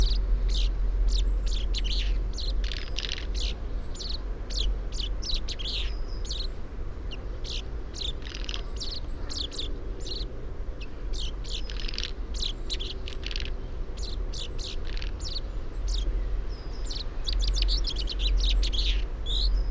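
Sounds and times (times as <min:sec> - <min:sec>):
common chaffinch Fringilla coelebs calls: 0:00.0 - 0:19.6.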